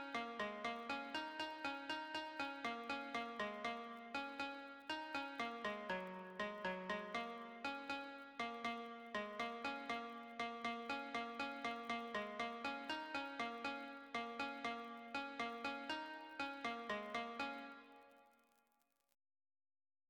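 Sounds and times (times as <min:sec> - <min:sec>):
pentatonic melody: 0:00.0 - 0:18.1.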